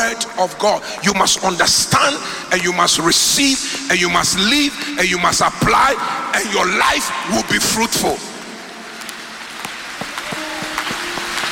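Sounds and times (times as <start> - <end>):
speech: 0.0 - 8.3
audience clapping hands: 9.0 - 11.5.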